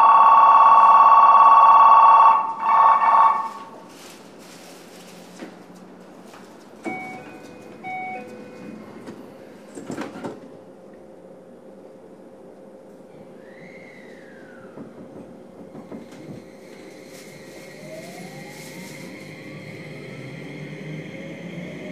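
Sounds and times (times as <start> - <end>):
train doors closing chime: 0.0 - 3.8, 6.8 - 9.1.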